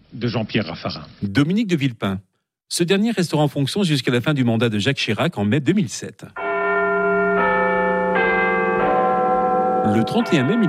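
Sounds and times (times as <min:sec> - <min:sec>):
speech: 0:00.1 - 0:06.4, 0:09.8 - 0:10.6
Big Ben bell striking the hour in London: 0:06.4 - 0:10.6.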